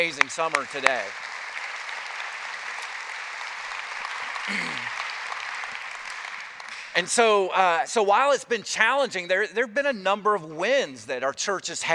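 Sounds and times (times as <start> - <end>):
speech: 0.0 - 1.3, 4.5 - 5.0, 7.0 - 11.9
crowd applauding: 0.0 - 7.3.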